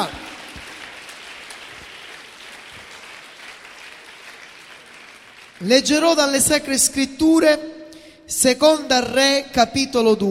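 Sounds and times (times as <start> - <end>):
audience applauding: 0.0 - 6.0
speech: 5.6 - 10.2.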